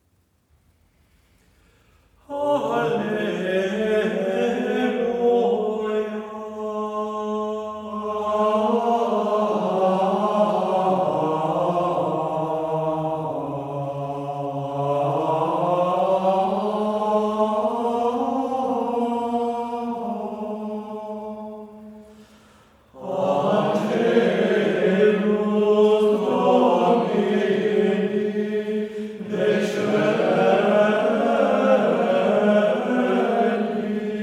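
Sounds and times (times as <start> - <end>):
two voices singing a chant: 2.2 - 22.3, 22.9 - 34.2.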